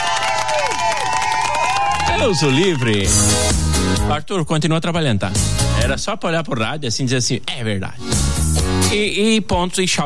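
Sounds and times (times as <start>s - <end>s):
crowd applause and cheering: 0.0s - 4.0s
speech: 2.2s - 10.0s.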